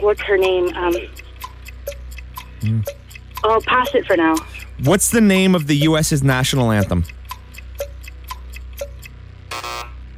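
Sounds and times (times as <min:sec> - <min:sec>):
speech: 0:00.0 - 0:01.2, 0:02.6 - 0:07.2
quiz timer ticking: 0:00.0 - 0:10.0
quiz buzzer: 0:09.4 - 0:10.1.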